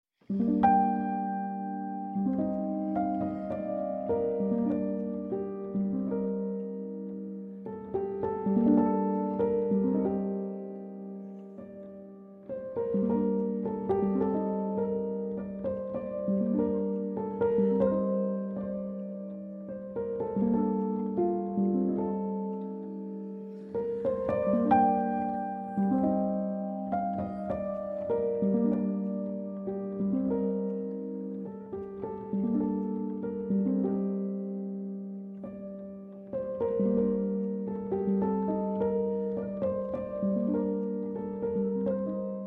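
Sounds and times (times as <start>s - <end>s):
piano playing: 0.2s - 42.4s.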